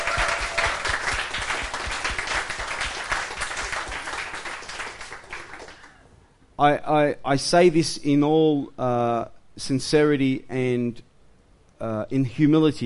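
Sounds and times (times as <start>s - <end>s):
audience applause: 0.0s - 6.0s
speech: 6.6s - 11.1s, 11.8s - 12.8s.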